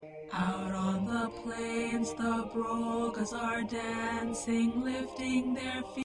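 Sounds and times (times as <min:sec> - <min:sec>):
tenor singing: 0:00.3 - 0:06.0.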